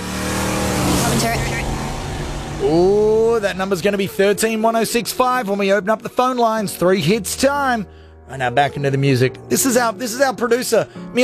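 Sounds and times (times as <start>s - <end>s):
car driving by: 0.0s - 5.2s
speech: 2.6s - 11.2s.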